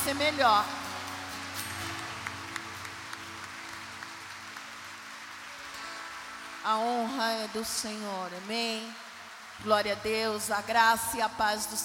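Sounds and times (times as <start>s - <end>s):
audience applause: 0.0s - 10.0s
speech: 0.1s - 0.8s, 6.6s - 9.0s, 9.6s - 11.8s.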